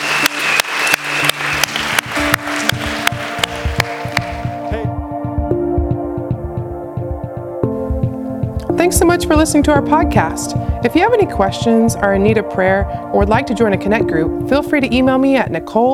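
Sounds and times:
round of applause: 0:00.0 - 0:04.6
steady rhythmic clap: 0:00.0 - 0:15.9
sustained keyboard chords: 0:00.0 - 0:15.9
speech: 0:08.9 - 0:15.9.

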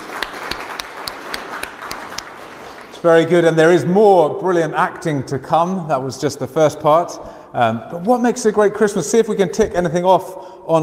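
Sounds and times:
audience applause: 0:00.0 - 0:03.3
speech: 0:03.0 - 0:10.8.

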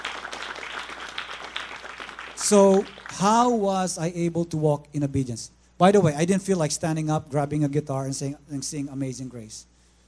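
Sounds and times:
audience clapping: 0:00.0 - 0:03.5
speech: 0:02.5 - 0:09.7.

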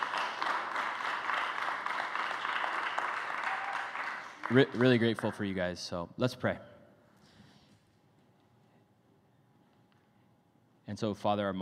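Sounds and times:
crowd applauding: 0:00.0 - 0:05.5
speech: 0:04.5 - 0:06.7, 0:10.9 - 0:11.6.

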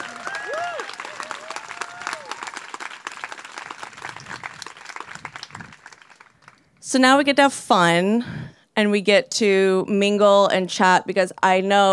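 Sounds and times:
crowd applauding: 0:00.0 - 0:06.8
speech: 0:06.9 - 0:11.9.

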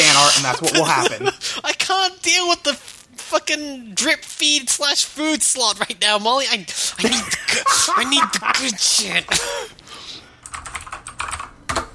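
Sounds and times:
laughter: 0:00.3 - 0:01.4, 0:07.0 - 0:09.5
speech: 0:00.4 - 0:09.8
typing a message on a computer keyboard: 0:10.4 - 0:11.9.

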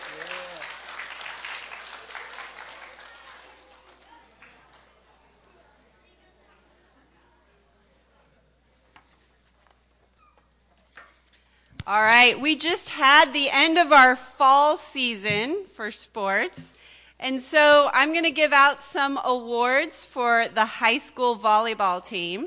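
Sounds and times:
audience applause: 0:00.0 - 0:05.2
speech: 0:11.9 - 0:22.4.

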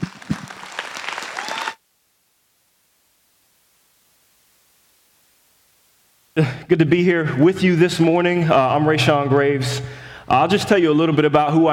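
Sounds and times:
church congregation applauding to welcome a guest speaker: 0:00.0 - 0:01.8
speech: 0:06.4 - 0:11.7.

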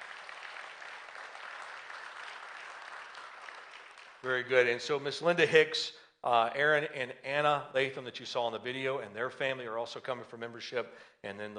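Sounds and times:
church congregation applauding to welcome new members: 0:00.0 - 0:05.0
speech: 0:04.2 - 0:11.5.

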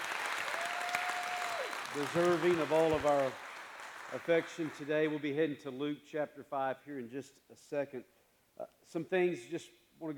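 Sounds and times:
crowd hand clapping: 0:00.0 - 0:05.2
speech: 0:02.0 - 0:03.4, 0:04.1 - 0:10.1.

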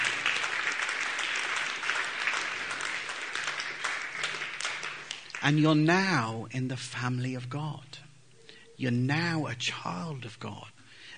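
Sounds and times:
crowd round of applause: 0:00.0 - 0:05.9
speech: 0:05.4 - 0:08.0, 0:08.8 - 0:10.8.

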